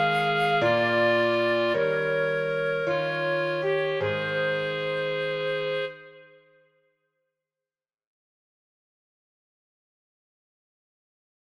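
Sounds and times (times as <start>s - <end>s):
piano: 0.0s - 6.5s
clarinet: 0.0s - 6.7s
flute: 0.0s - 6.8s.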